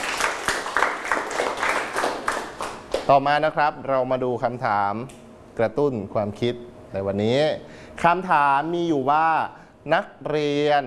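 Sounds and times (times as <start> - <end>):
scattered hand claps from students: 0.0 - 3.1
speech: 3.1 - 10.8.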